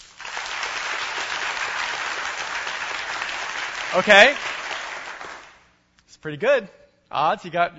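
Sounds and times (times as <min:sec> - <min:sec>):
crowd clapping loudly: 0:00.0 - 0:05.7
speech: 0:03.9 - 0:04.5, 0:06.2 - 0:07.7.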